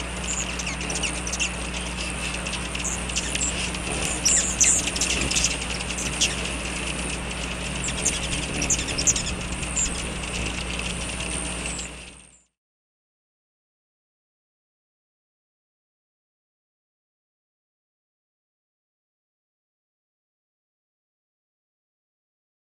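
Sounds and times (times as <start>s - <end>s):
hummingbird chirps and calls: 0.0s - 12.0s.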